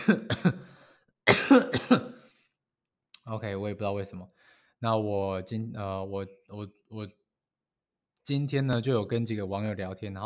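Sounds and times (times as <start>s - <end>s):
coughing: 0.0s - 2.3s
speech: 0.1s - 0.6s, 1.5s - 2.1s, 3.3s - 7.2s, 8.3s - 10.2s.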